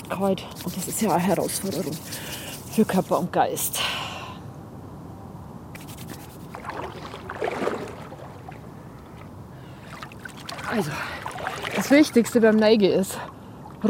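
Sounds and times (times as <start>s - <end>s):
rubbing hands together: 0.0s - 3.2s, 5.8s - 6.7s
speech: 0.1s - 4.0s, 10.8s - 11.1s, 11.8s - 13.8s.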